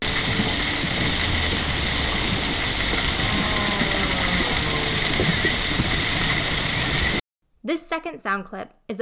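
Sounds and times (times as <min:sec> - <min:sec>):
bottlenose dolphins underwater in Bocas del Toro: 0:00.0 - 0:07.2
speech: 0:07.7 - 0:09.0.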